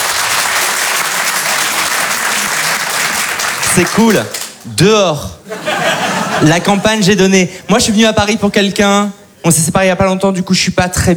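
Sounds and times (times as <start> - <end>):
audience applause: 0.0 - 4.6
speech: 3.7 - 11.1
laughter: 5.4 - 7.2.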